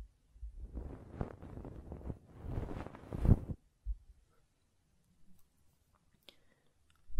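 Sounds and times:
ear cleaning scratchy, crackling rubs: 0.7s - 3.6s.

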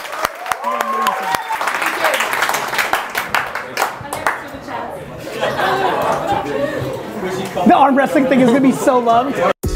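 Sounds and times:
audience clapping and cheering: 0.0s - 4.7s
crowd chatter: 3.4s - 9.6s
laughter: 5.2s - 7.3s, 8.2s - 9.5s
speech: 7.7s - 9.5s.

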